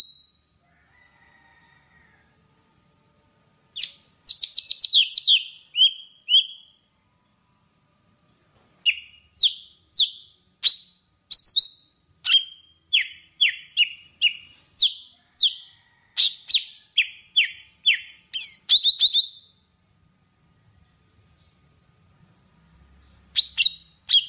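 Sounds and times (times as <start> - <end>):
Java sparrow singing: 0.0 - 0.4, 3.8 - 6.8, 8.8 - 19.6, 23.3 - 24.2.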